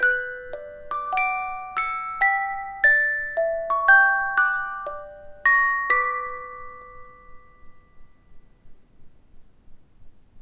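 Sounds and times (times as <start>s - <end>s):
music box playing: 0.0s - 8.3s.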